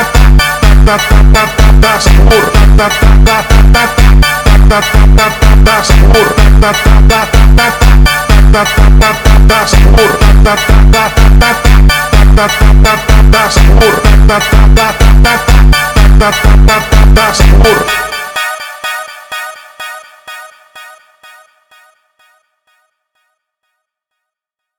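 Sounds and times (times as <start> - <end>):
slowed funk music: 0.0 - 18.8.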